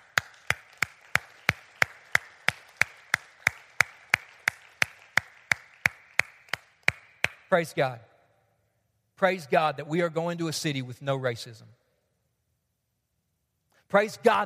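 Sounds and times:
person clapping: 0.0 - 7.5
speech: 7.5 - 8.1, 9.2 - 11.8, 13.9 - 14.4.

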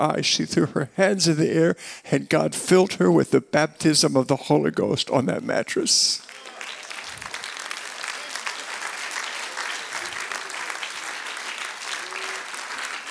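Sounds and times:
speech: 0.0 - 6.3
audience clapping: 6.2 - 13.0.

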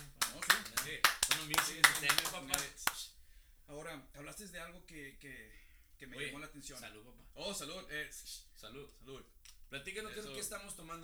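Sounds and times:
applause: 0.0 - 3.0
speech: 3.9 - 11.0.

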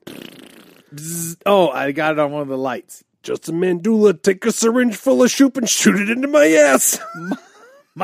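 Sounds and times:
comedic fart sound effect: 0.0 - 1.4
speech: 0.9 - 8.0.

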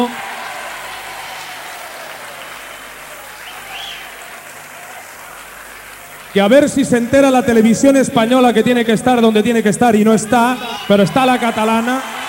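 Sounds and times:
audience applause: 0.0 - 7.8, 10.3 - 12.2
speech: 6.3 - 12.1.

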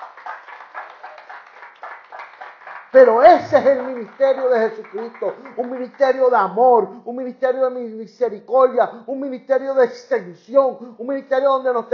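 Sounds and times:
church congregation clapping rhythmically: 0.0 - 6.9
speech: 2.9 - 11.9.

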